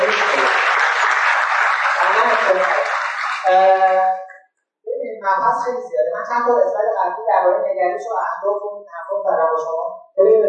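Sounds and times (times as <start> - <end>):
applause: 0.0 - 4.3
speech: 5.3 - 10.4.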